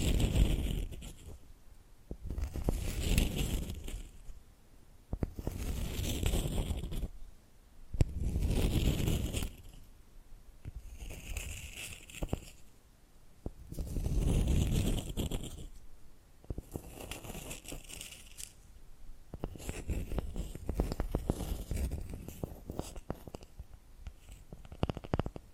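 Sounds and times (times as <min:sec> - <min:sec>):
scratching and tapping: 0:00.0 - 0:01.4, 0:02.1 - 0:04.3, 0:05.1 - 0:07.1, 0:08.0 - 0:09.9, 0:10.6 - 0:12.7, 0:13.4 - 0:15.8, 0:16.4 - 0:18.6, 0:19.3 - 0:25.5.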